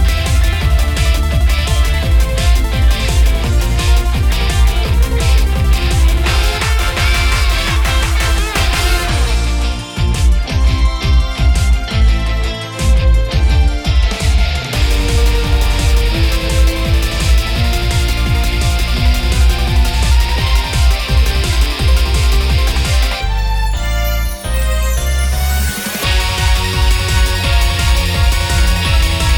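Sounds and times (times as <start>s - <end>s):
musical accompaniment: 0.0s - 29.3s.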